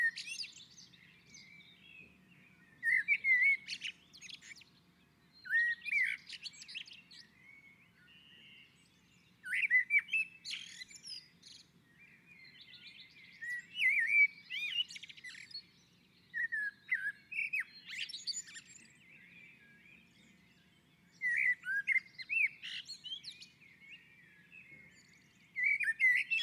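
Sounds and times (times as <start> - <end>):
common blackbird song: 0.0 - 26.4.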